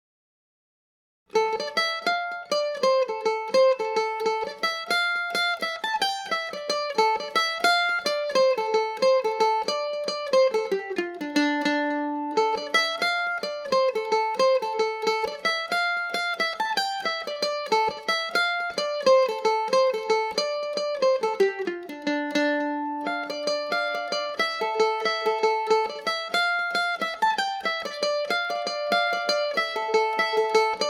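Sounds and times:
Irish mandolin tunes in D minor: 1.3 - 30.8.

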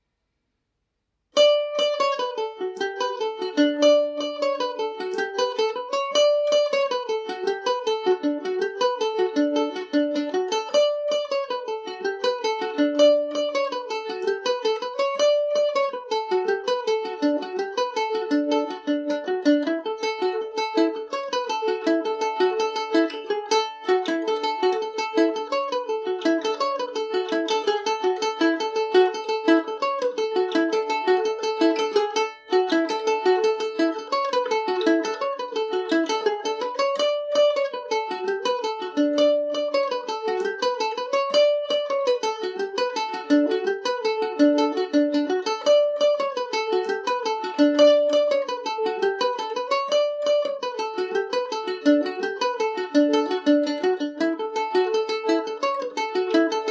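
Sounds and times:
bittersweet jig in D major on mandolin: 1.4 - 56.6.

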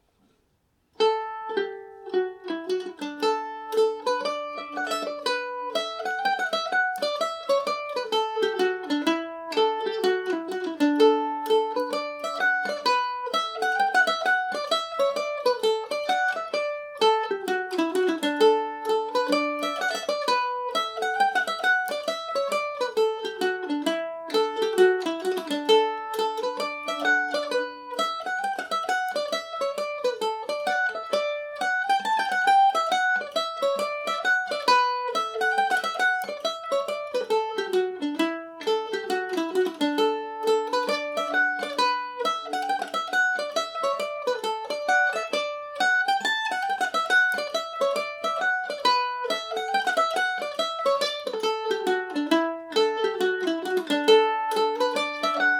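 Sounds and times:
mandolin in D major: 0.0 - 55.5.

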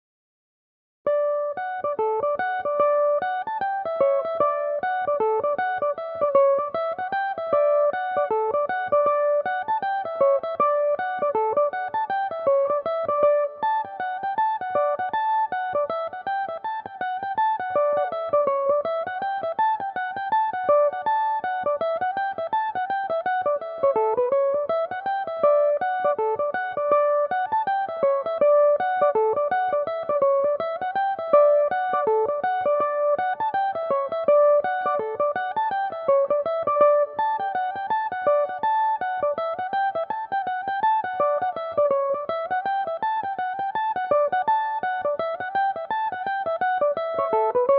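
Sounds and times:
mandolin playing a reel in D major: 1.4 - 47.7.

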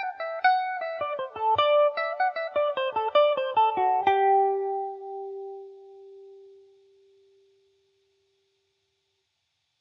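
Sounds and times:
mandolin playing in G major: 0.0 - 6.1.

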